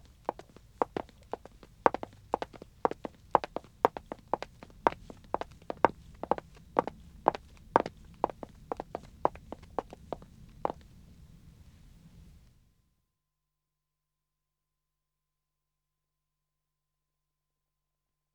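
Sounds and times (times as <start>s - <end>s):
woman's footsteps walking on wood: 0.2s - 10.0s.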